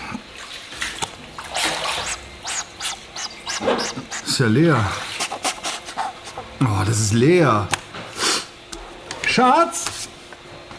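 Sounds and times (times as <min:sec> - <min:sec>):
water splashing in a bathtub as someone washes: 0:00.0 - 0:06.4
speech: 0:04.4 - 0:05.1, 0:06.6 - 0:07.8, 0:09.4 - 0:09.9.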